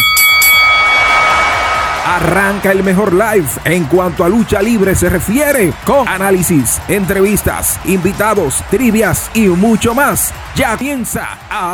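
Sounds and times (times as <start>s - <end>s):
wrestling ring bell: 0.0s - 1.6s
speech: 2.2s - 11.7s.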